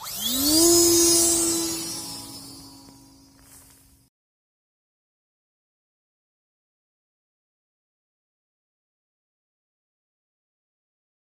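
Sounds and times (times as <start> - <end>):
drone: 0.0 - 4.1.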